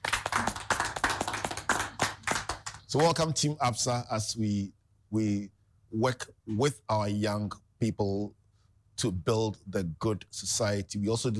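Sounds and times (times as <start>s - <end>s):
audience clapping to welcome a bank's team at an event: 0.0s - 3.3s
speech: 2.9s - 8.4s, 9.0s - 11.3s.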